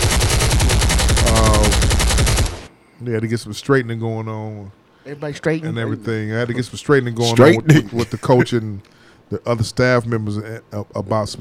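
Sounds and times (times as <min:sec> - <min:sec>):
automatic gunfire: 0:00.0 - 0:02.7
speech: 0:03.0 - 0:11.4.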